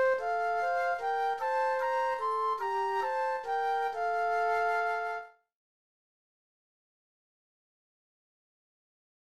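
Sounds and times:
flute duet: 0.0s - 5.4s.

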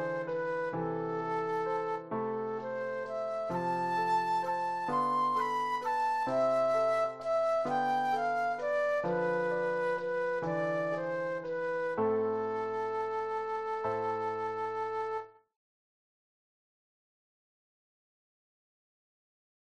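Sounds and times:
flute solo: 0.0s - 15.5s.

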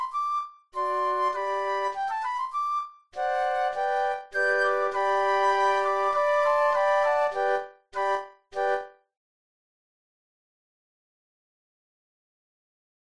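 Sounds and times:
flute quartet: 0.0s - 8.9s.

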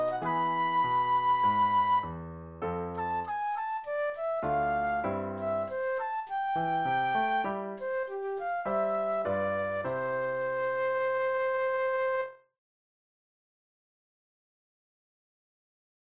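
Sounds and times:
classical flute solo: 0.0s - 2.2s, 3.0s - 12.4s.

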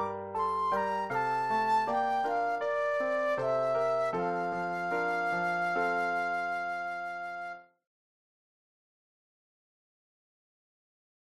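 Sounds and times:
flute solo: 0.0s - 7.7s.

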